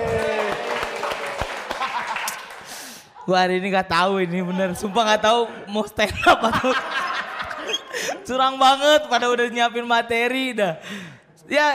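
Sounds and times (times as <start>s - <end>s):
audience applause: 0.0s - 2.8s
laughter: 1.5s - 2.6s, 4.3s - 9.1s
speech: 3.3s - 7.0s, 8.3s - 11.7s.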